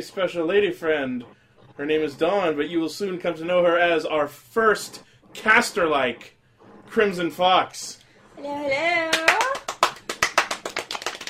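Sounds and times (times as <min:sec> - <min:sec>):
speech: 0:00.0 - 0:09.6
one-handed clapping: 0:09.1 - 0:11.2.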